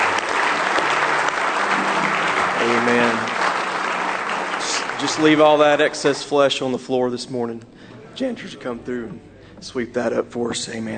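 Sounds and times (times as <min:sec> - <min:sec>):
church congregation clapping as a hand clap of praise: 0:00.0 - 0:06.5
speech: 0:02.7 - 0:03.3, 0:05.0 - 0:10.9.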